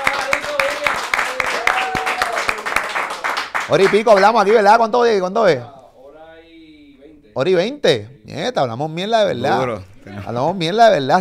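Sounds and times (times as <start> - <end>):
audience applause: 0.0 - 4.6
overlapping voices with drawn-out vocal tones: 0.0 - 4.7
speech: 3.7 - 5.8, 7.4 - 11.1.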